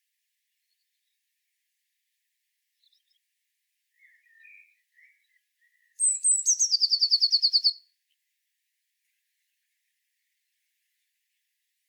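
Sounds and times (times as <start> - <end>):
Eurasian blue tit singing: 4.0 - 7.8.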